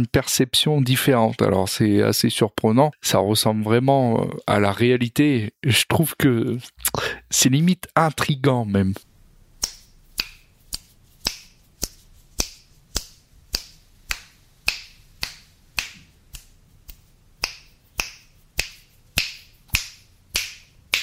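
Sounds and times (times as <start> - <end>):
speech: 0.0 - 9.1
binaural finger snaps moving around head: 9.6 - 21.0.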